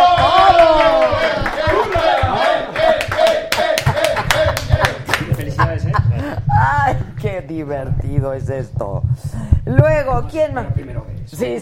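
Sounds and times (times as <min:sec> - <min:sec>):
audience clapping: 0:00.0 - 0:05.6
laughter: 0:01.2 - 0:07.0
speech: 0:07.7 - 0:11.6.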